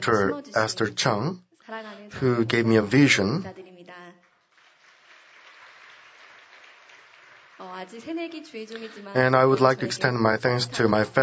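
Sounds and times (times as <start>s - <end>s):
speech: 0.0s - 3.7s, 7.8s - 11.2s
audience applause: 4.4s - 11.0s.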